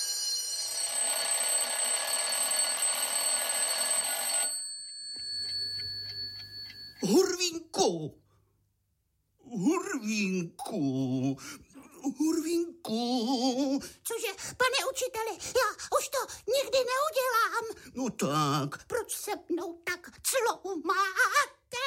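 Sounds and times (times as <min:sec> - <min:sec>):
school bell ringing: 0:00.0 - 0:07.0
speech: 0:07.0 - 0:08.2, 0:09.6 - 0:21.6.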